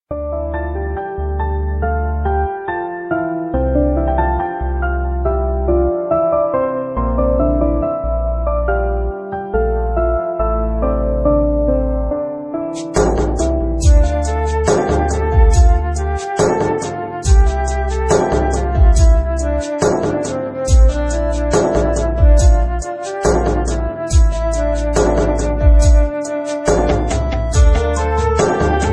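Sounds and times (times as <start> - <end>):
sad piano: 0.1 - 28.9.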